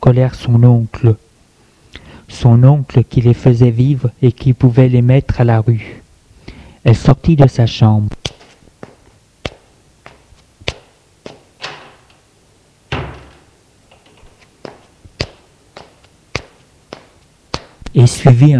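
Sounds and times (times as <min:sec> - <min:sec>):
speech: 0:00.0 - 0:01.2, 0:02.3 - 0:06.0, 0:06.8 - 0:08.2, 0:18.0 - 0:18.5
door opening: 0:11.3 - 0:12.3, 0:12.9 - 0:14.9
wooden clicks and knocks: 0:12.9 - 0:15.9.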